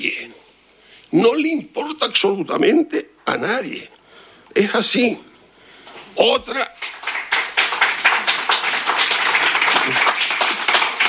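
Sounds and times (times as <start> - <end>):
speech: 1.1 - 5.3, 6.2 - 6.7
audience applause: 6.8 - 11.0.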